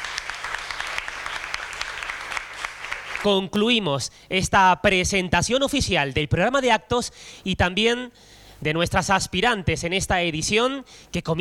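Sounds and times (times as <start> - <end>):
audience applause, an ovation: 0.0 - 3.3
speech: 3.2 - 11.3.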